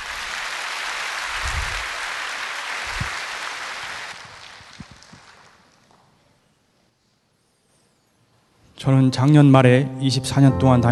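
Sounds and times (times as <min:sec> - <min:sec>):
audience applause: 0:00.0 - 0:05.9
speech: 0:08.8 - 0:10.9.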